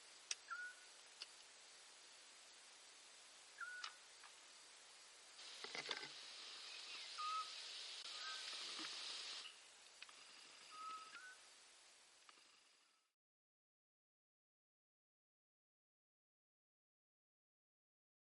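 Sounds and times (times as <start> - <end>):
faint high hiss: 0.0 - 13.1
Eurasian scops owl piping: 0.5 - 0.9, 3.6 - 4.0, 6.6 - 8.6, 10.6 - 11.4.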